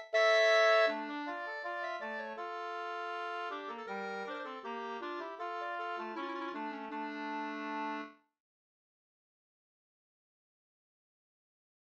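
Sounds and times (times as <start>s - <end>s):
folk walking tune: 0.0s - 8.2s.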